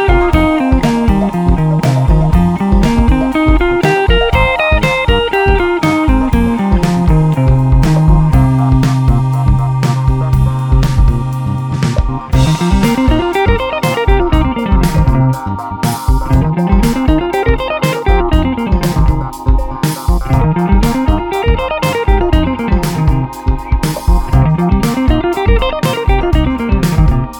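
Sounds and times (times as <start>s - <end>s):
improvised guitar: 0.0s - 27.3s.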